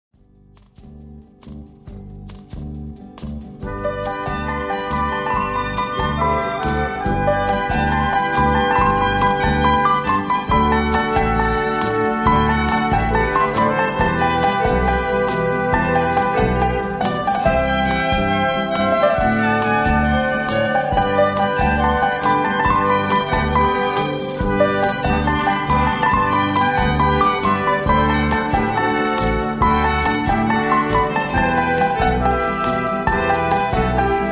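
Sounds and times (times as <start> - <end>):
piano: 0.5 - 34.2.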